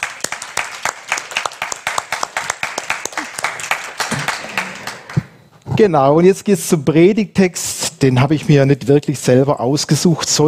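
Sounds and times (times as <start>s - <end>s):
audience applause: 0.0s - 5.3s
speech: 5.8s - 10.4s.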